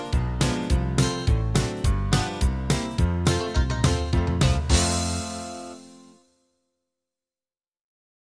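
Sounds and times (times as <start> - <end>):
uptempo ragtime music: 0.0 - 6.2.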